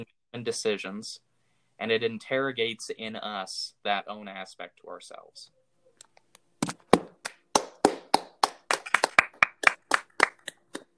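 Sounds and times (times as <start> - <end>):
speech: 0.0 - 5.6
hands clapping: 6.6 - 10.9.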